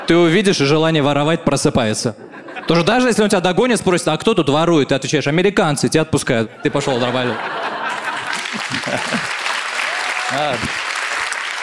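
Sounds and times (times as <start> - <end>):
speech: 0.1 - 7.8, 8.6 - 9.4, 10.3 - 10.8
laughter: 2.1 - 3.5, 6.4 - 9.7
audience clapping: 7.7 - 11.6.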